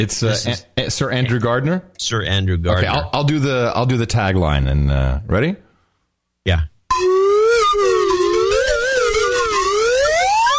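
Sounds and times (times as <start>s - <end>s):
speech: 0.0s - 5.6s, 6.4s - 6.7s
slide whistle duet ringtone: 6.9s - 10.5s.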